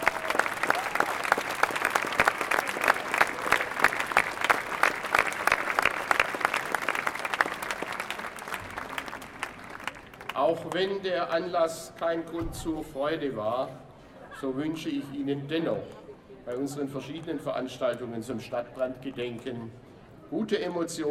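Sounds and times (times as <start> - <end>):
audience applause: 0.0 - 10.4
speech: 10.5 - 13.8, 14.4 - 21.0.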